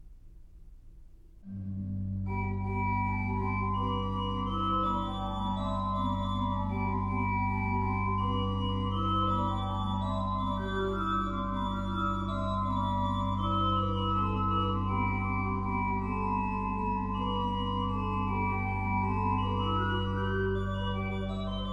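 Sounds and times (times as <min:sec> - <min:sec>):
organ chorale prelude: 0:01.5 - 0:21.7.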